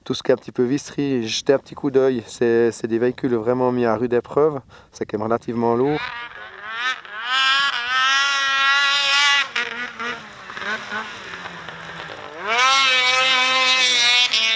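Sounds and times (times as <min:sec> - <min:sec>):
speech: 0:00.1 - 0:07.0
snowmobile engine revving: 0:05.7 - 0:14.5.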